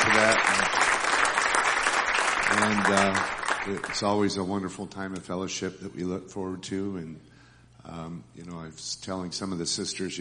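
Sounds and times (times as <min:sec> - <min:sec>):
audience applause for Harvest Festival workers: 0:00.0 - 0:04.1
speech: 0:00.2 - 0:00.8, 0:02.5 - 0:10.1.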